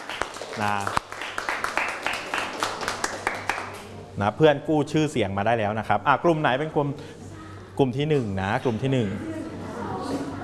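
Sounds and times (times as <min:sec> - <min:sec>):
group of students clapping in a classroom: 0:00.0 - 0:03.9
speech: 0:00.6 - 0:01.1, 0:04.2 - 0:07.2, 0:07.8 - 0:09.4.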